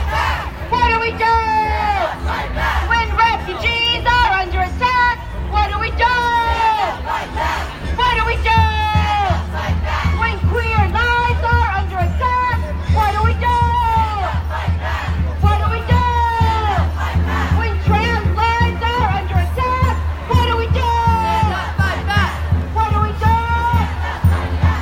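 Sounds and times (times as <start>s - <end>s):
march music: 0.0s - 24.8s.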